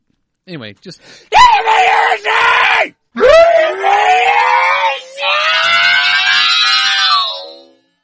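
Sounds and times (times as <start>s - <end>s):
speech: 0.5s - 4.6s
person screaming loudly: 1.3s - 7.7s.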